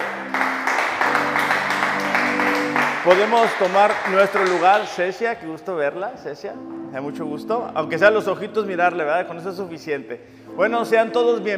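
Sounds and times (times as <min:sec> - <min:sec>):
audience applause: 0:00.0 - 0:05.0
speech: 0:03.1 - 0:11.5.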